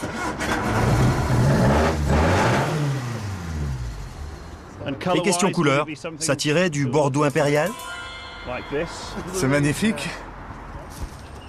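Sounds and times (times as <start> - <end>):
1600 cc car engine revving: 0.0 - 4.8
speech: 5.0 - 10.3.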